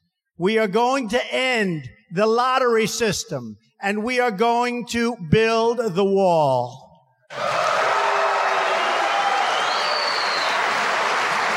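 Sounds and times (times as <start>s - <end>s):
speech: 0.4s - 7.6s
audience booing a speech on immigration and farm labor: 7.3s - 11.5s.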